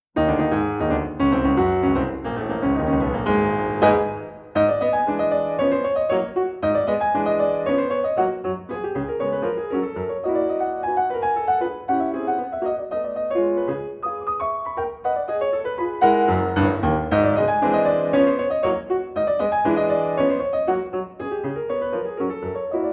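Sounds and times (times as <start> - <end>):
frenetic ragtime piece in G-sharp minor: 0.2 - 22.9.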